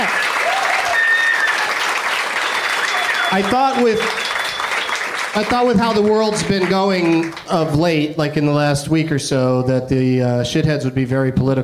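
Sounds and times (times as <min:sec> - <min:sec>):
people whooping and cheering: 0:00.0 - 0:07.2
studio audience applause for show guests: 0:00.0 - 0:07.9
speech: 0:03.3 - 0:04.3, 0:05.3 - 0:11.6.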